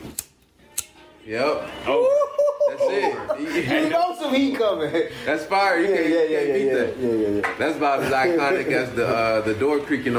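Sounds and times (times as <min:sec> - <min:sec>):
lighter flicking: 0:00.0 - 0:01.0
speech: 0:01.3 - 0:02.2, 0:02.9 - 0:10.1
laughter: 0:01.9 - 0:05.2.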